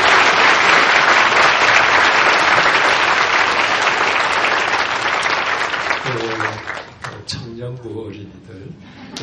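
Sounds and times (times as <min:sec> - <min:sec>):
audience applauding: 0:00.0 - 0:07.3.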